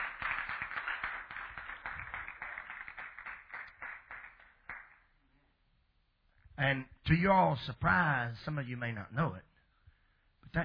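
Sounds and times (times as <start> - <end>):
audience hand clapping: 0.0 - 5.2
speech: 6.6 - 9.5.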